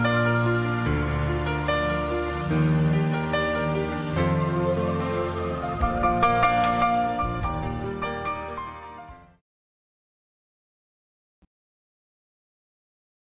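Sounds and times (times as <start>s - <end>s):
instrumental music: 0.0s - 9.4s.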